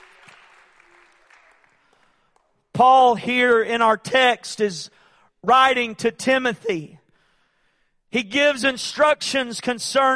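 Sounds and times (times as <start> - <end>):
audience hand clapping: 0.0 - 2.7
speech: 2.8 - 7.0, 8.1 - 10.1.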